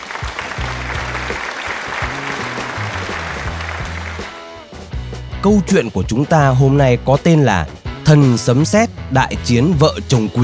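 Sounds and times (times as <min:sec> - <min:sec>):
applause: 0:00.0 - 0:04.5
speech: 0:05.4 - 0:10.4.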